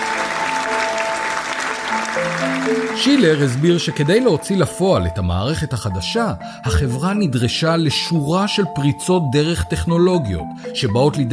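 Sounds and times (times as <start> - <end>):
audience bursting into applause: 0.0 - 4.3
speech: 2.4 - 11.3.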